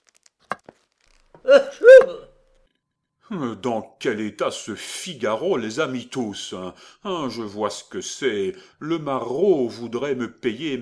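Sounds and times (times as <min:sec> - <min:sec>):
person sneezing: 0:01.4 - 0:02.3
speech: 0:01.4 - 0:02.3, 0:03.3 - 0:10.8.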